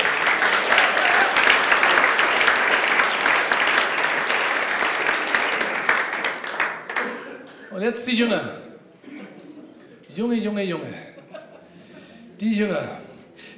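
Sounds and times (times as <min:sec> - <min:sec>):
audience applause: 0:00.0 - 0:07.6
laughter: 0:06.8 - 0:07.8, 0:08.8 - 0:10.1, 0:10.8 - 0:13.0
speech: 0:07.8 - 0:08.6, 0:10.2 - 0:11.1, 0:12.4 - 0:13.0.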